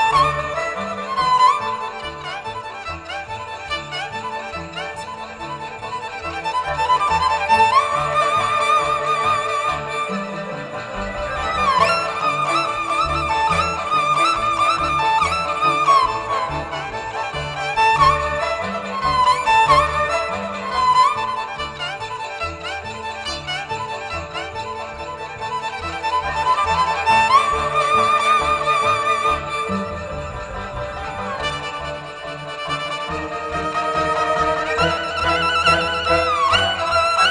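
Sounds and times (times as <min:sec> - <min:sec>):
banhu bowed string instrument: 0:00.0 - 0:37.2.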